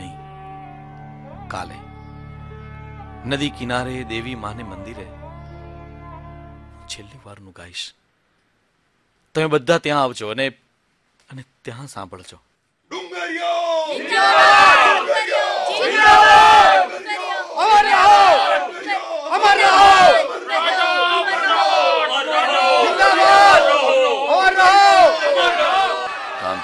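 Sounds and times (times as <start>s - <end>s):
speech: 1.5s - 1.9s, 3.2s - 5.2s, 6.9s - 8.0s, 9.3s - 10.6s, 11.3s - 12.5s, 13.3s - 15.0s
large crowd shouting at a riverbank near a goddess temple: 12.9s - 26.6s.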